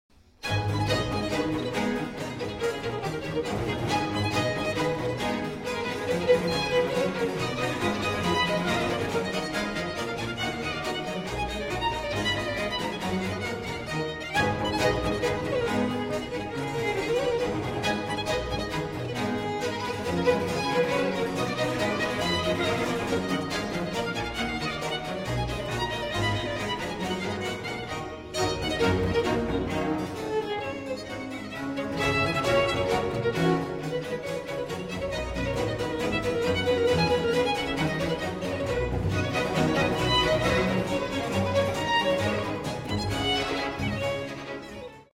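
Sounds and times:
staccato music: 0.3 - 45.1.

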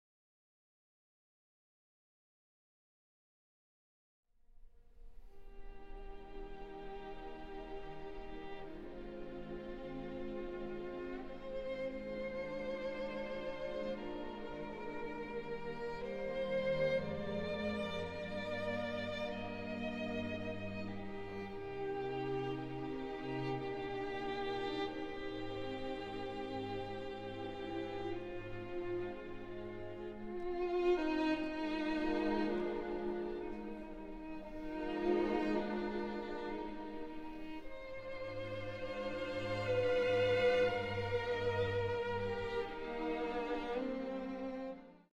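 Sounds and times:
violin concerto adagio in G minor: 4.9 - 45.1.

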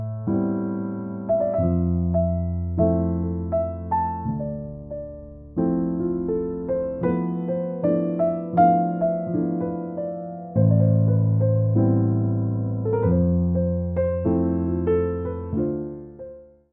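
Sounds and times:
chill instrumental jazz piano: 0.0 - 16.7.

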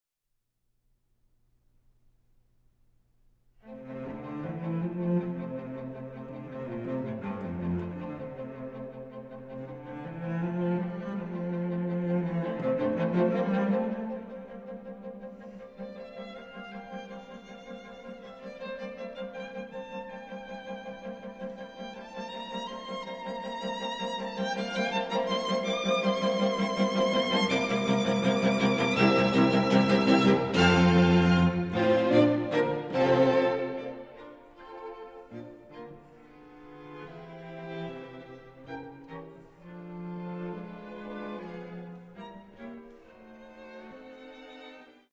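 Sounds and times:
string quartet playing an allegro in F major: 3.6 - 45.1.

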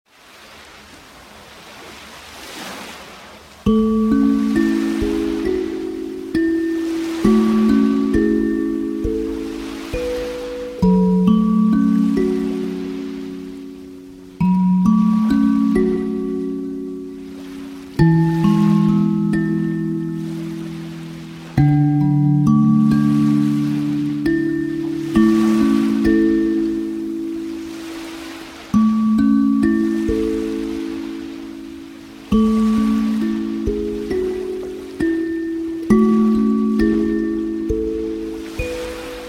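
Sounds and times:
kalimba: 3.6 - 39.2.

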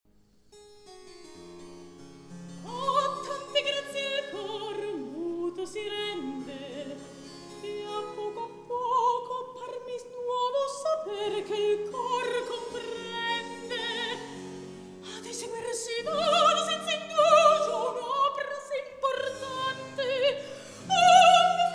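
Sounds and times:
recitative singing: 2.7 - 7.0, 7.6 - 14.4, 15.0 - 21.7.

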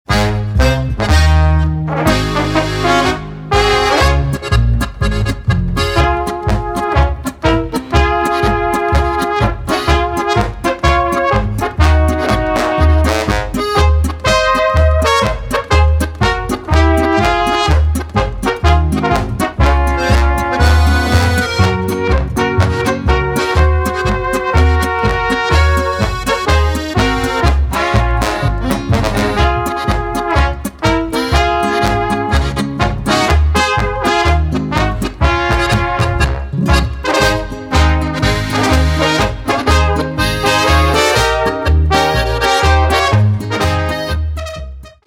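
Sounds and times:
golden trumpets playing: 0.0 - 45.0.

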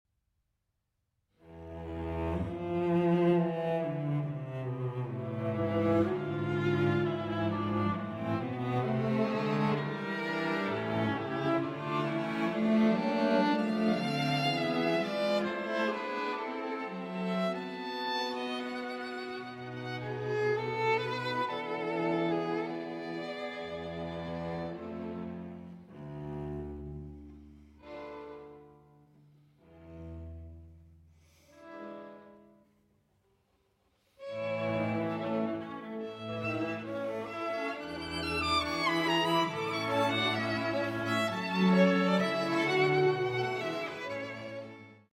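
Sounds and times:
string quartet playing: 1.5 - 32.6, 34.2 - 45.1.

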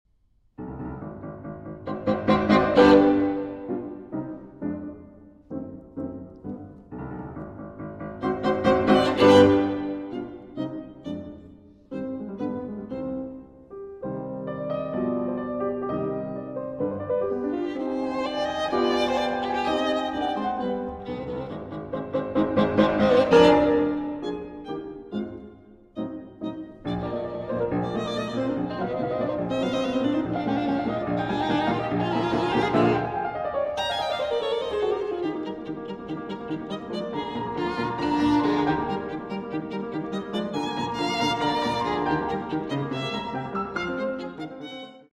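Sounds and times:
violin sonata finale allegro: 0.6 - 45.1.

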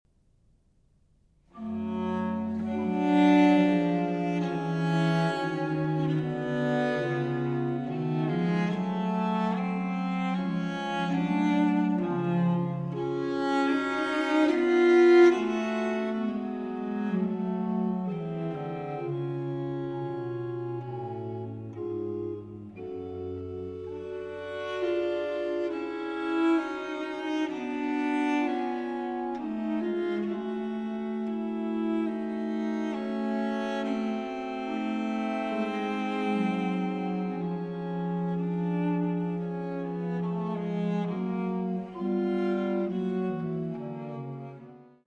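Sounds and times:
cello and continuo sonata: 0.0 - 45.0.

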